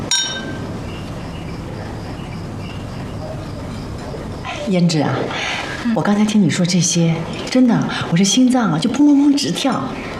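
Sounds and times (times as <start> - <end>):
glasses clinking in a toast: 0.0 - 0.6
low murmur: 0.0 - 10.1
speech: 4.7 - 10.1.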